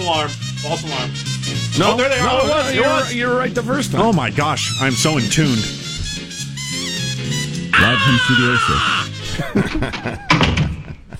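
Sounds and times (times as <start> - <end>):
speech: 0.1 - 5.8, 7.9 - 10.4
door opening: 5.8 - 6.3, 9.7 - 11.1
laughter: 7.8 - 11.1.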